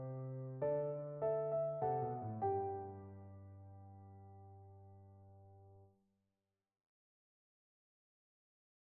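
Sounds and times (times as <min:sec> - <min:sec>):
piano lullaby in G major: 0:00.0 - 0:05.9.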